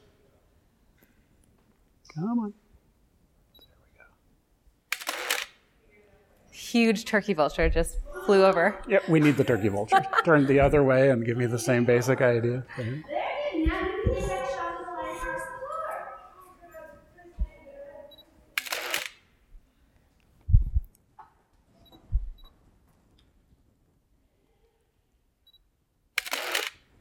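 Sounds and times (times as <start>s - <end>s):
speech: 2.1s - 2.6s, 6.7s - 13.2s
camera focus confirmation beeping: 4.9s - 5.6s, 18.1s - 19.3s, 26.2s - 26.8s
laughter: 8.9s - 16.1s.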